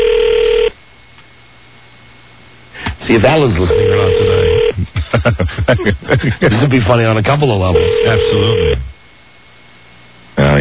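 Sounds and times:
outgoing phone call ring tone: 0.0s - 0.7s, 3.5s - 4.7s, 7.7s - 8.9s
speech: 3.1s - 8.9s, 10.4s - 10.6s
laughter: 4.7s - 7.0s.

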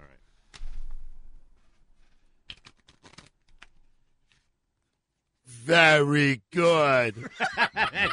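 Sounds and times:
deck of playing cards being shuffled: 1.6s - 5.0s
speech: 5.7s - 8.1s
laughter: 7.1s - 8.1s.

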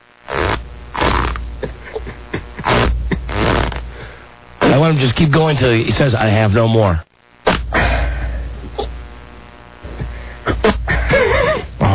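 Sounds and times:
man farting on command: 0.2s - 4.0s, 7.4s - 8.0s, 8.6s - 9.0s, 9.8s - 11.9s
speech: 4.8s - 7.1s.

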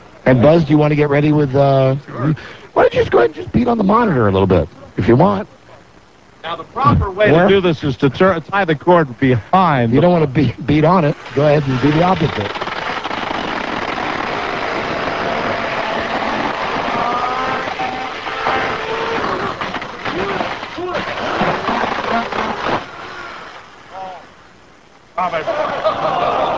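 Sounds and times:
speech: 0.3s - 5.6s, 6.4s - 12.6s
electric chainsaw running: 11.3s - 23.5s
laughter: 25.2s - 26.5s.

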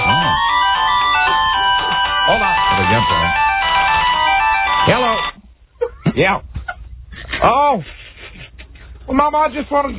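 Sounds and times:
new phone's bright electronic ringtone melody: 0.0s - 5.4s
speech: 6.2s - 6.5s, 7.4s - 8.0s, 9.1s - 9.9s.

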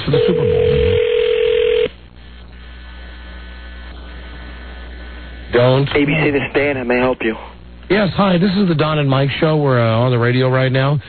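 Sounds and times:
speech: 0.1s - 0.4s, 5.8s - 11.0s
telephone dial tone: 0.1s - 1.9s.

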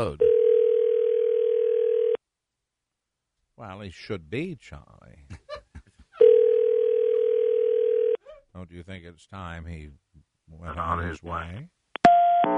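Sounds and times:
speech: 0.0s - 0.2s, 3.6s - 5.4s, 8.6s - 11.8s
mid-pitched telephone tone: 0.2s - 2.2s, 6.2s - 8.2s, 12.1s - 12.5s.

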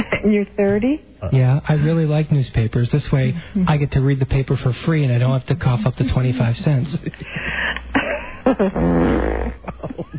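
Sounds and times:
speech: 0.0s - 7.9s, 8.5s - 9.8s
laughter: 5.2s - 10.1s
buzzy farts: 8.6s - 9.7s.

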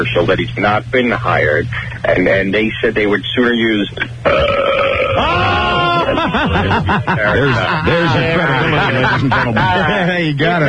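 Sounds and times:
speech: 0.0s - 5.6s, 6.2s - 10.6s
loud burp: 4.2s - 6.2s
laughter: 5.2s - 10.2s.

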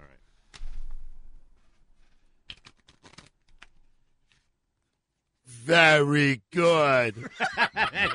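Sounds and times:
playing cards being shuffled: 1.6s - 5.0s
speech: 5.7s - 8.1s
laughter: 7.1s - 8.1s.

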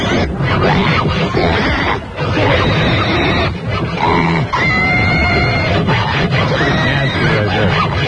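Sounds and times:
real pigs grunting and squealing: 0.0s - 8.0s.

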